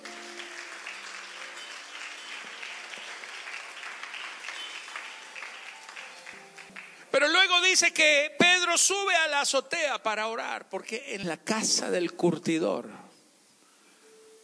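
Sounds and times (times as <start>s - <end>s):
audience applauding: 0.0s - 7.4s
speech: 7.2s - 13.0s.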